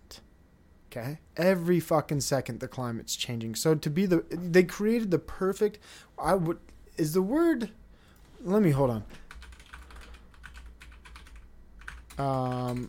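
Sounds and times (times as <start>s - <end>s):
speech: 1.0s - 7.8s, 8.4s - 9.2s, 12.2s - 12.8s
computer keyboard typing: 9.2s - 12.8s.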